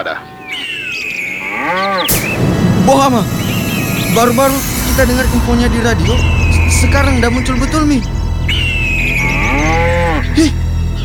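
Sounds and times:
speech: 0.0 - 0.4, 1.0 - 3.4, 4.2 - 8.6, 9.5 - 10.6
cattle mooing: 1.3 - 2.1, 9.0 - 10.5
steady hum: 2.1 - 11.0.

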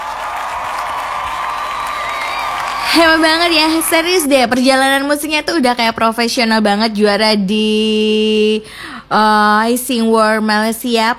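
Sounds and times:
audience clapping: 0.0 - 4.2
audience cheering and whoops: 0.0 - 4.3
speech: 2.9 - 11.1.

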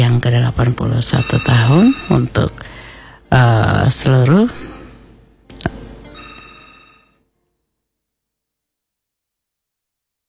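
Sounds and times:
telephone ringing for a call-in caller: 0.0 - 3.7, 5.5 - 7.2
speech: 0.2 - 2.7, 3.3 - 4.7.

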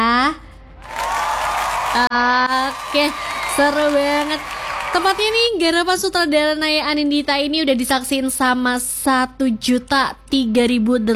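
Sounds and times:
audience applause: 0.8 - 5.5
speech: 2.0 - 11.1.

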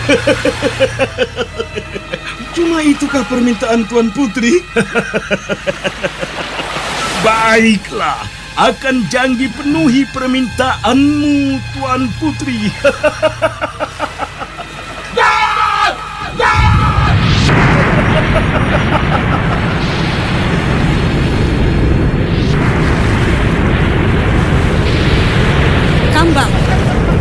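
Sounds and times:
laughter: 0.0 - 21.0, 26.4 - 27.2
big ocean waves crashing: 0.0 - 27.2
speech: 0.1 - 6.5, 7.2 - 14.0.

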